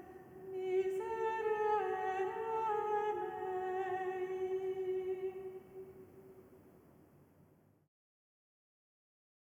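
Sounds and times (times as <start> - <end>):
Lenten gospel acclamation: 0.0 - 6.6.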